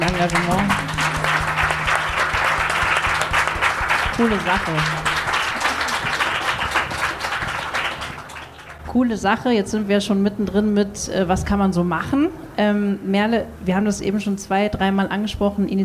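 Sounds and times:
audience applause: 0:00.0 - 0:08.8
speech: 0:00.2 - 0:00.9, 0:04.2 - 0:05.2, 0:09.0 - 0:15.8.

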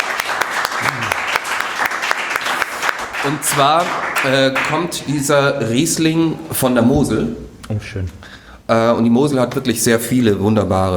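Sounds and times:
small group applauding at a wine tasting: 0:00.0 - 0:05.3
speech: 0:03.2 - 0:10.9.

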